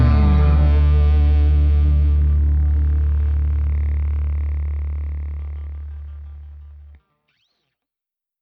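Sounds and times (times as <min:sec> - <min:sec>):
country music: 0:00.0 - 0:04.3.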